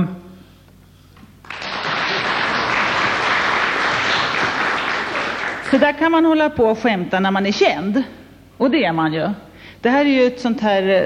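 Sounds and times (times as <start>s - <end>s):
audience applauding: 1.4s - 5.8s
speech: 5.7s - 11.0s.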